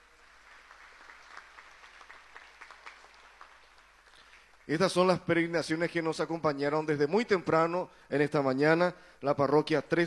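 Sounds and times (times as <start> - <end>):
applause: 0.0 - 5.4
speech: 4.7 - 10.0.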